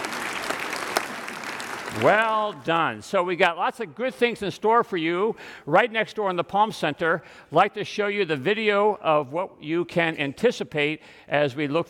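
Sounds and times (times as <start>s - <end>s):
audience applause: 0.0s - 2.6s
speech: 1.9s - 11.8s.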